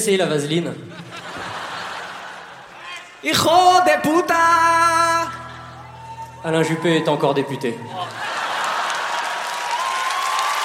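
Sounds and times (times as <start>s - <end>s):
speech: 0.0s - 1.1s, 3.2s - 5.4s, 6.4s - 8.2s
laughter: 0.8s - 2.9s, 8.0s - 9.6s
audience applause: 7.9s - 10.6s.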